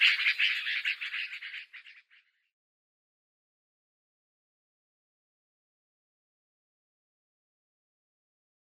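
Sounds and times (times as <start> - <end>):
Yellow-vented Bulbul calls: 0.0 - 2.2.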